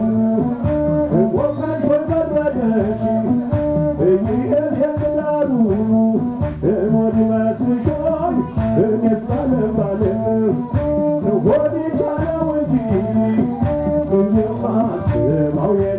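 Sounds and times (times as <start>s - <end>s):
Ethiopian musicians playing at a restaurant in Addis Ababa: 0.0s - 15.9s.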